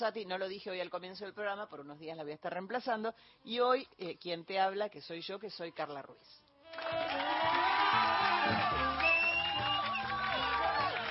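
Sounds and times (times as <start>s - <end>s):
speech: 0.0s - 8.8s
crowd cheering and applauding: 6.6s - 11.0s
high whoops: 6.6s - 11.0s.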